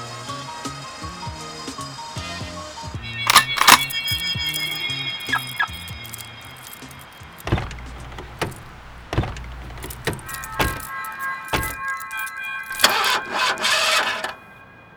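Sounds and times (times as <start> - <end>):
whirring ringing tone: 3.0 - 14.9
raggedy car out of gas cranking without catching: 3.2 - 14.5.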